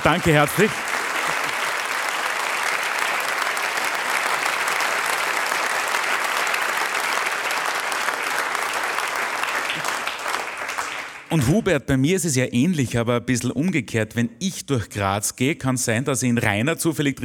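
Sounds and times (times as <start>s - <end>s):
speech: 0.0s - 1.0s, 11.3s - 17.2s
audience applause: 0.0s - 11.5s.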